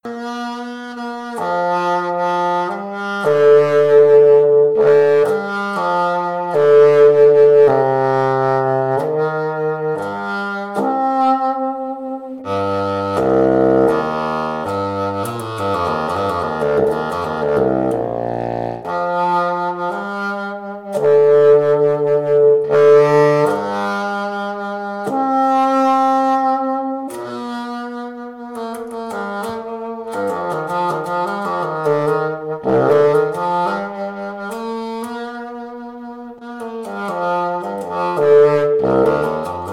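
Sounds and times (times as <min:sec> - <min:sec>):
bassoon in B: 0:00.0 - 0:39.7.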